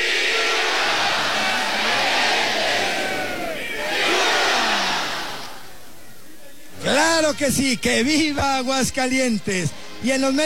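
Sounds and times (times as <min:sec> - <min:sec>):
crowd shouting a cheer and greeting: 0:00.0 - 0:05.8
speech: 0:07.3 - 0:10.4.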